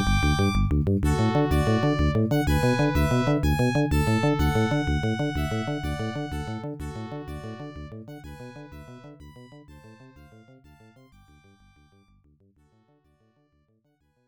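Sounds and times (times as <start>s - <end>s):
unused background music: 0.0s - 11.1s.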